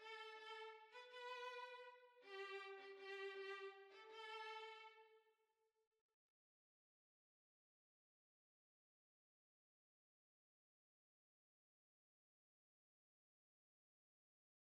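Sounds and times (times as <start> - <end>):
violin: 0.0 - 5.2.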